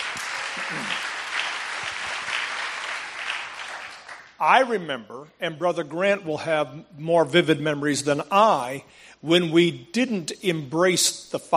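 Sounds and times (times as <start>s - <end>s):
audience giving a hand clap: 0.0s - 4.4s
speech: 4.4s - 11.5s.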